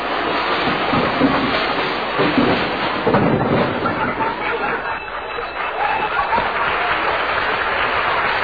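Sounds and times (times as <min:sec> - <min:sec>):
closet contents crashing out sound effect: 0:00.0 - 0:06.9
laughter: 0:03.5 - 0:08.3.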